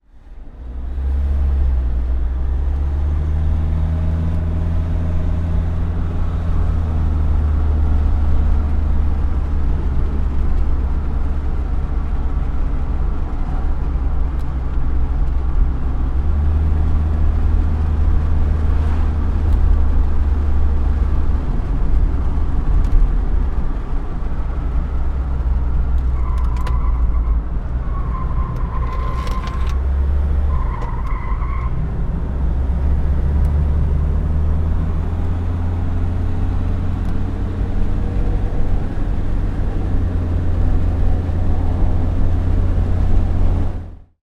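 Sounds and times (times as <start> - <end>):
SUV driving away hard around a corner, heard from inside: 0.1 - 44.1
SUV tyres screeching: 26.2 - 29.8.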